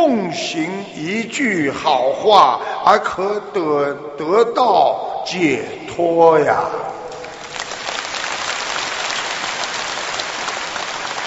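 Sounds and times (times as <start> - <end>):
speech: 0.1 - 7.0
audience applause: 7.2 - 11.2.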